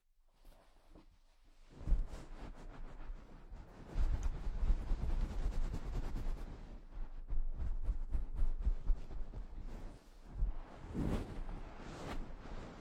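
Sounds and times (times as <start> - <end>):
head massage rubbing and scratching: 1.8 - 12.8.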